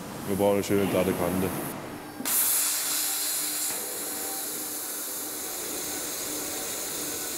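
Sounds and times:
speech: 0.3 - 1.7
abrasive waterjet cutter cutting through material: 2.3 - 7.3.

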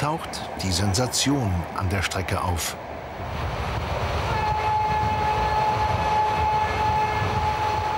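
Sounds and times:
speech: 0.0 - 3.5
diesel locomotive pulling train: 0.0 - 7.9.

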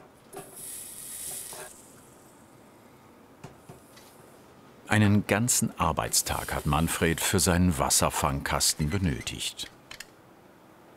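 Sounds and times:
soldering on sheet metal hissing: 0.4 - 2.4, 6.1 - 7.3
speech: 4.9 - 9.8.

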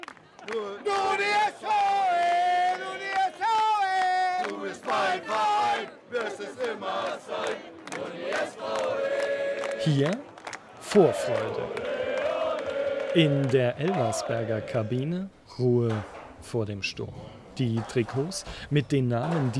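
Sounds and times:
football fans chanting on a march: 0.0 - 15.4
speech: 4.9 - 10.3, 10.9 - 11.9, 13.2 - 19.5.

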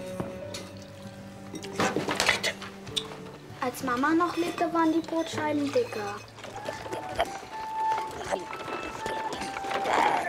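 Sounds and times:
faint clinks of a pot or cups: 0.0 - 3.1, 3.9 - 10.2
speech: 3.7 - 6.3
warm water pouring: 4.2 - 10.2.

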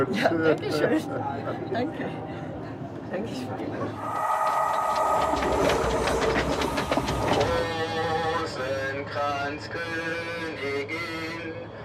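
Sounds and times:
speech: 0.0 - 2.5, 3.1 - 4.4, 5.2 - 6.8
train running on rails: 2.4 - 11.8
high tonal squeals: 3.9 - 8.6.

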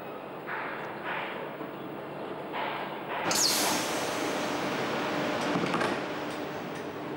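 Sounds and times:
Golden Pass Panoramic train mechanical hum: 0.0 - 7.1
hiss of released air: 3.3 - 5.0.

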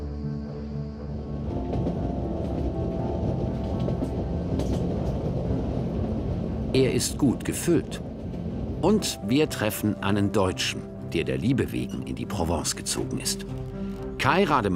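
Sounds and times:
passenger train running along the Côte Bleue: 0.1 - 14.7
speech: 6.8 - 8.1, 8.8 - 14.7.

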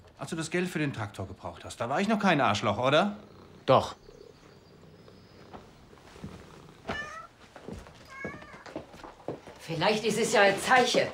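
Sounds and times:
speech: 0.2 - 4.0, 9.7 - 11.1
cat meowing: 6.9 - 7.4, 8.0 - 8.8.

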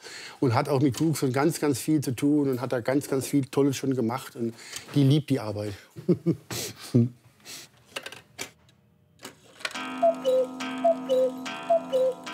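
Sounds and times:
speech: 0.4 - 7.7
Black Forest cuckoo clock ticking: 9.8 - 12.3.

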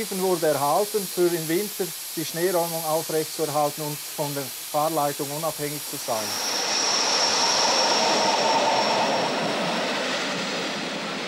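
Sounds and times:
speech: 0.0 - 6.6
train rumbling past: 6.0 - 11.2.

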